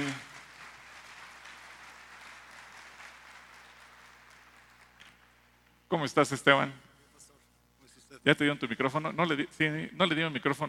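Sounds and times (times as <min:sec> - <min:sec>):
audience applause: 0:00.0 - 0:05.4
speech: 0:05.9 - 0:06.9, 0:08.2 - 0:10.6.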